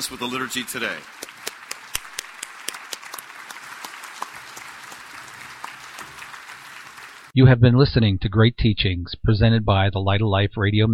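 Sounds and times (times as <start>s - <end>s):
speech: 0.0s - 1.3s, 7.4s - 10.9s
audience applause: 0.0s - 7.3s.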